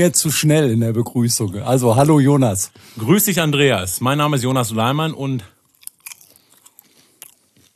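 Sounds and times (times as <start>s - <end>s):
speech: 0.0s - 5.6s
popcorn chewed with a full mouth: 5.6s - 7.7s.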